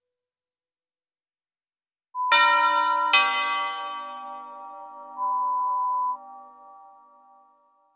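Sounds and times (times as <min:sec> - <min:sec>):
lo-fi ding-dong chimes: 0:02.2 - 0:07.5.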